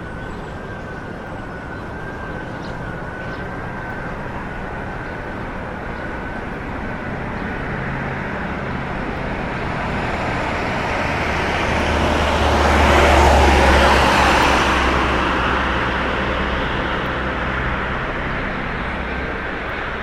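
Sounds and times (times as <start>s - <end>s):
traffic at a small town edge in Digne: 0.0s - 20.0s.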